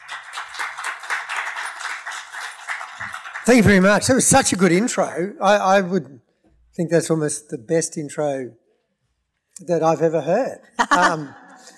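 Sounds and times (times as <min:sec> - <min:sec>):
audience clapping to welcome two speakers onto a stage: 0:00.0 - 0:04.8
speech: 0:03.0 - 0:08.6, 0:09.6 - 0:11.4
laughter: 0:10.8 - 0:11.7.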